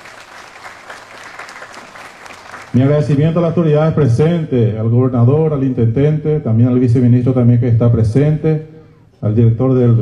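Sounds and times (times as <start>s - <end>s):
audience applause: 0.0s - 2.9s
speech: 2.7s - 10.0s.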